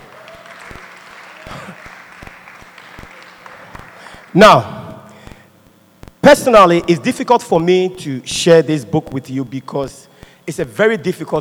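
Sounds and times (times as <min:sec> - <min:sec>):
scattered audience clapping: 0:00.0 - 0:04.4
speech: 0:04.4 - 0:04.8, 0:06.3 - 0:11.3.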